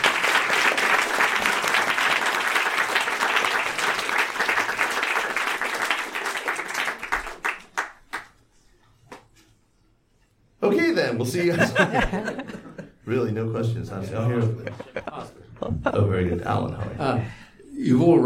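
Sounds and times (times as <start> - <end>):
audience round of applause: 0.0 - 8.4
speech: 10.7 - 18.2
laughter: 11.4 - 13.0, 14.0 - 17.4.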